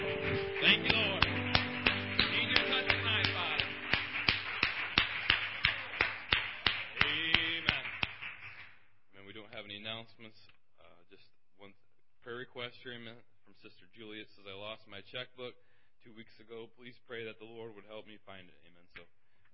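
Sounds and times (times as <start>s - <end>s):
audience applauding: 0.0s - 8.8s
speech: 13.0s - 19.2s.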